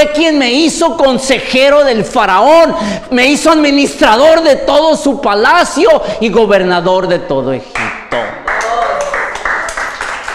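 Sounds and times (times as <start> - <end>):
speech: 0.0 - 8.4
audience applauding: 7.8 - 10.3.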